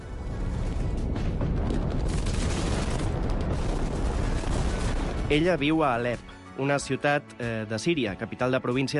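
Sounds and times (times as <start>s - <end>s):
bombing explosions in a war zone: 0.2s - 6.3s
speech: 5.3s - 8.9s.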